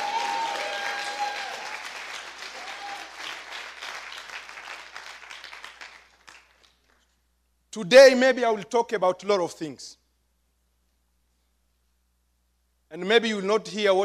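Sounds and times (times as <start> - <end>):
brief cheers: 0.0 - 3.4
crowd clapping: 0.0 - 7.1
speech: 7.7 - 10.0, 13.0 - 14.0.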